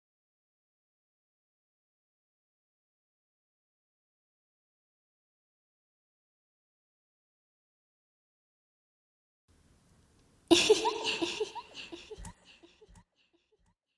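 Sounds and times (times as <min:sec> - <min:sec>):
person speaking: 0:10.5 - 0:12.5
person giggling: 0:10.5 - 0:12.7.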